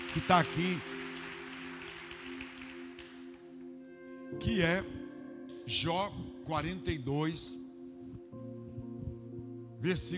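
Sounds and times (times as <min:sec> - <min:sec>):
audience applause: 0:00.0 - 0:03.4
low sustained keyboard chord: 0:00.0 - 0:10.1
speech: 0:00.2 - 0:00.9, 0:04.4 - 0:05.0, 0:05.7 - 0:07.6, 0:09.8 - 0:10.1.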